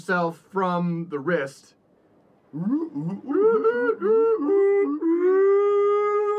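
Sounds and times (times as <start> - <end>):
speech: 0.0 - 1.8, 2.5 - 5.0
person imitating whale song: 2.5 - 6.3.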